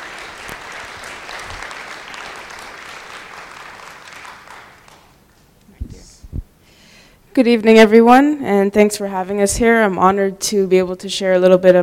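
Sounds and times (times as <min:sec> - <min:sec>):
audience clapping to welcome a speaker at a Teen Challenge gathering: 0:00.0 - 0:05.5
speech: 0:07.4 - 0:11.8.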